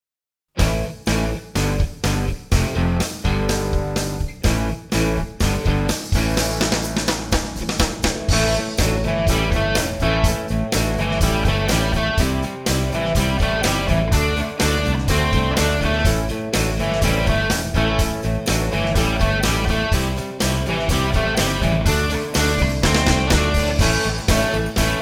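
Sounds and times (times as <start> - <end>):
ballroom rock drum play-along: 0.6 - 24.9.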